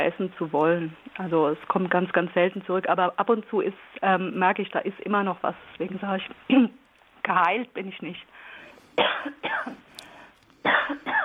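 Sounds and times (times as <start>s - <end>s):
speech: 0.0s - 9.8s
harsh throaty coughs in a coughing fit: 8.9s - 9.8s, 10.6s - 11.2s.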